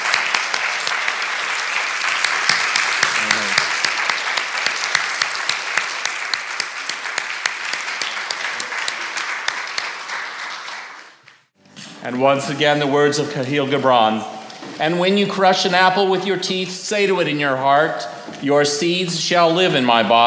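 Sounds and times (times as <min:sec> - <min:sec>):
audience round of applause: 0:00.0 - 0:11.5
speech: 0:12.1 - 0:20.2.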